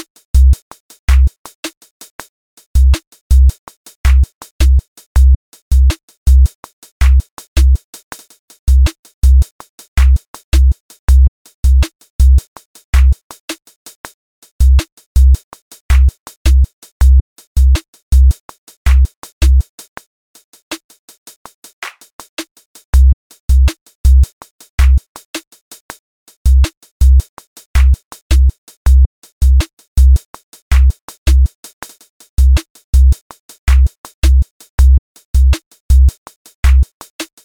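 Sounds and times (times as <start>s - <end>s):
music loop with beats: 2.8s - 7.8s, 8.8s - 12.4s, 13.0s - 13.2s, 14.6s - 18.3s, 18.9s - 19.6s, 23.0s - 25.0s, 26.5s - 27.2s, 27.8s - 31.5s, 32.4s - 33.1s, 33.7s - 36.9s.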